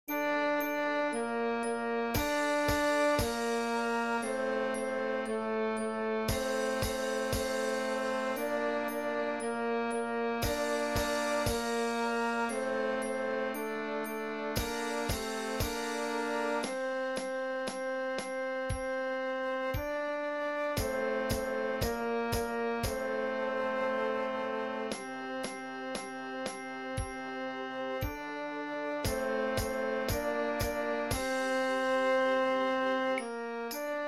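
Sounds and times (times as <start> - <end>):
concert duet medley: 0.1 - 34.0.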